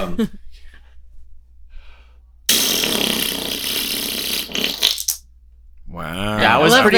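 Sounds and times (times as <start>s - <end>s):
speech: 0.0s - 0.5s, 6.0s - 6.9s
wet fart sound effect: 2.5s - 5.2s.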